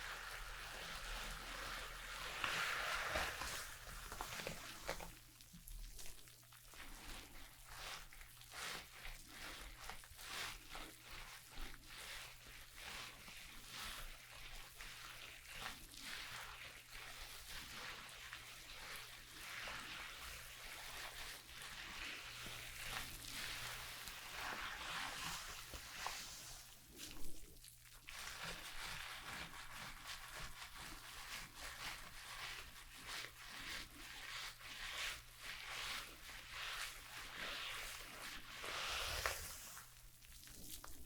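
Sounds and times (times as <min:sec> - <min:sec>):
hair being shampooed and brushed: 0:00.0 - 0:41.0.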